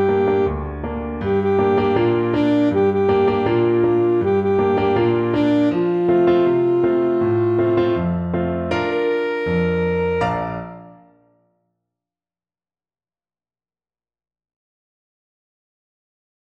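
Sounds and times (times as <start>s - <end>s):
saxophone: 0.0s - 11.2s.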